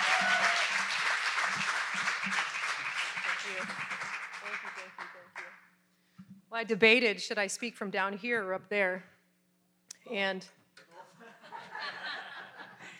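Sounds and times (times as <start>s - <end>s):
audience applause and hand clapping: 0.0s - 5.5s
speech: 6.6s - 9.1s, 10.1s - 10.6s
laughter: 10.9s - 12.9s.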